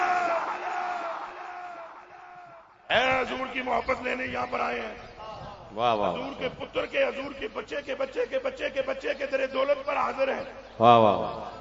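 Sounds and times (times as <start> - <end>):
crowd shouting in answer to a religious slogan: 0.0 - 2.8
speech: 2.9 - 5.1, 5.7 - 11.5.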